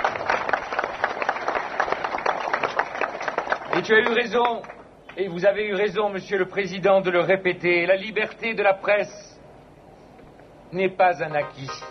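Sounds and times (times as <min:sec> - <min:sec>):
crowd applauding: 0:00.0 - 0:04.8
speech: 0:03.8 - 0:09.3, 0:10.7 - 0:11.8.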